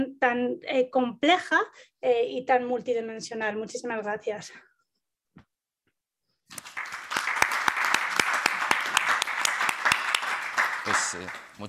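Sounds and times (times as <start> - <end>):
speech: 0.0 - 4.7, 10.8 - 11.6
audience applause: 6.5 - 11.6.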